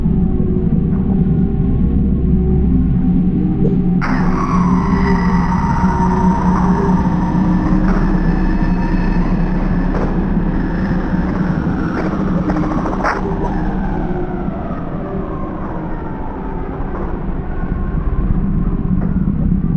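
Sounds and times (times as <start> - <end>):
drone: 0.0 - 19.7.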